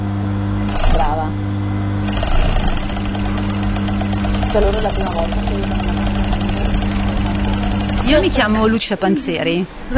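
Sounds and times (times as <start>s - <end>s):
sewing machine stitching: 0.6s - 1.2s, 2.0s - 8.7s
speech: 4.5s - 5.8s, 8.1s - 9.9s.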